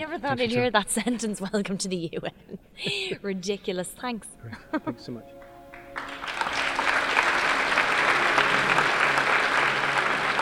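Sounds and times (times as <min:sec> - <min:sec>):
speech: 0:00.0 - 0:05.4
audience applause at the end of a film screening in the UN ECOSOC chamber: 0:05.7 - 0:10.4.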